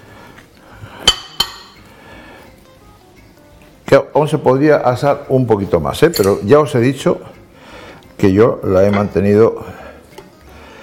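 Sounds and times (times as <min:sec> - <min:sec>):
speech: 0:03.9 - 0:07.4, 0:08.2 - 0:09.8
non-stick casserole lid clinking as it is opened: 0:06.0 - 0:06.6.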